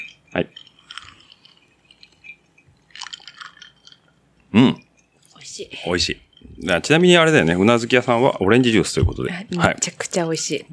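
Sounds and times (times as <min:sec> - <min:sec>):
person drinking a highball: 0:00.0 - 0:05.4
speech: 0:00.3 - 0:00.7, 0:04.5 - 0:04.8, 0:05.8 - 0:10.7.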